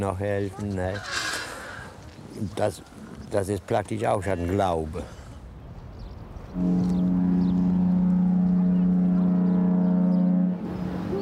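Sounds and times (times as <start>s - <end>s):
speech: 0.0s - 1.3s, 2.4s - 5.2s, 6.6s - 6.9s
horn sounding: 6.6s - 10.8s.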